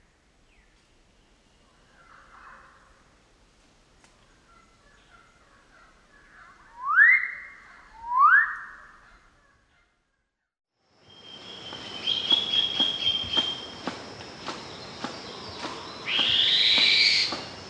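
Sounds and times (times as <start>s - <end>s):
magnificent riflebird rising whistled calls: 6.7s - 9.0s, 11.1s - 17.6s.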